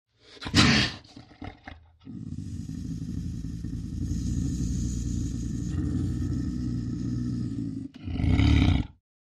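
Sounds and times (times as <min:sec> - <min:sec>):
lynx snarling: 0:00.2 - 0:09.0.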